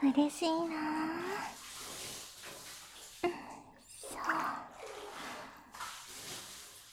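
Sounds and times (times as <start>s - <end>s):
hot water poured over a body in a bath: 0.1s - 6.9s
speech: 0.2s - 1.6s
soft breathy sounds: 3.2s - 5.8s.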